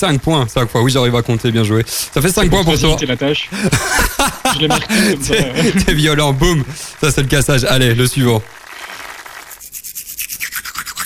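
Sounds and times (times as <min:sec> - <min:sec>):
speech: 0:00.0 - 0:08.6
laughter: 0:02.0 - 0:08.4
toothbrush scrubbing teeth: 0:08.8 - 0:11.0.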